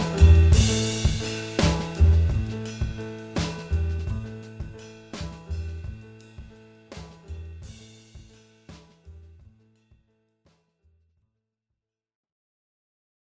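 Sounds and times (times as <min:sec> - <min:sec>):
improvising music mix: 0:00.0 - 0:09.0.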